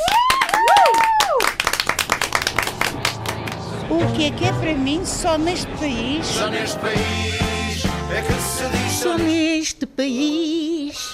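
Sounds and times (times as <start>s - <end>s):
audience applause: 0.0s - 3.9s
speech: 3.9s - 7.5s, 8.1s - 10.6s.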